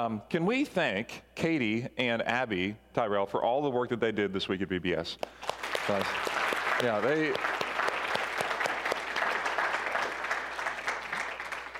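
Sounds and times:
speech: 0.0s - 7.5s
audience applause: 5.4s - 11.7s.

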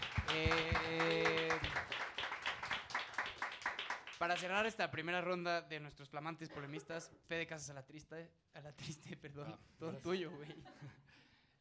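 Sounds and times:
audience applause: 0.0s - 4.4s
speech: 0.3s - 1.4s, 4.2s - 11.6s
laughter: 9.8s - 11.0s.

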